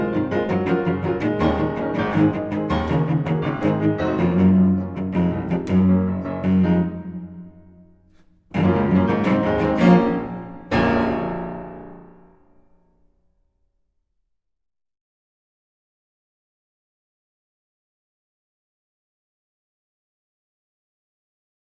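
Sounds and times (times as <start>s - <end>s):
cello: 0.0s - 12.8s
piano: 0.0s - 13.2s.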